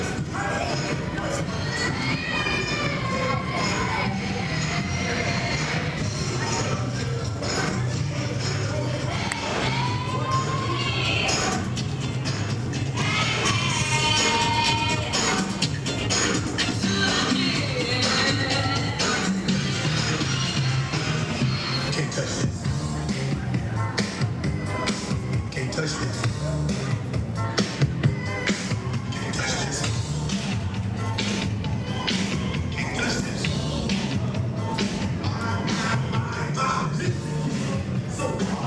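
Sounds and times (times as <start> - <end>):
children shouting: 0.0 - 6.7, 9.0 - 11.6, 12.9 - 15.5
crowd chatter at Universal Studios Florida: 0.0 - 38.6.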